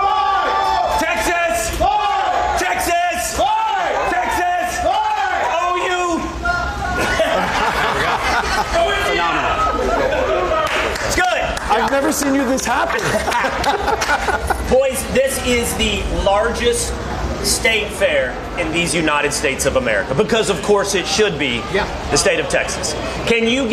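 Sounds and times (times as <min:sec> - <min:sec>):
large crowd whooping and yelling: 0:00.0 - 0:12.2
laughter: 0:06.8 - 0:10.5, 0:12.9 - 0:14.7
speech: 0:12.1 - 0:23.7.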